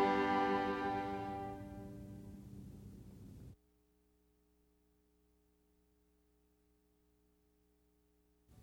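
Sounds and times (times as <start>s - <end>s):
strings: 0.0s - 2.5s.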